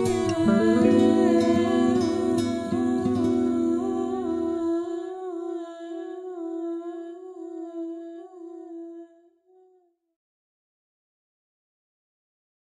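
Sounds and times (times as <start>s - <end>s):
lullaby: 0.0s - 9.1s.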